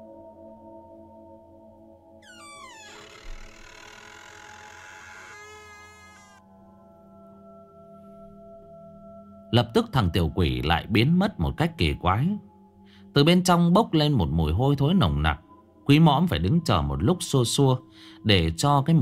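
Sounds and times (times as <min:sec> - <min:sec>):
door creaking open slowly: 0:02.2 - 0:06.4
speech: 0:09.5 - 0:12.5, 0:13.2 - 0:18.9.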